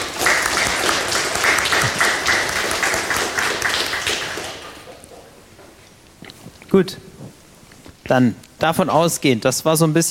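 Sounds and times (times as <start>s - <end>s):
short round of applause: 0.0s - 5.0s
speech: 6.8s - 7.0s, 8.1s - 10.0s.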